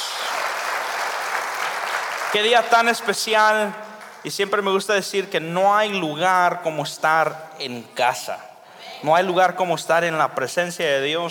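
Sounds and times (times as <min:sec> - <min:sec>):
audience applauding: 0:00.0 - 0:03.1
speech: 0:02.3 - 0:11.2.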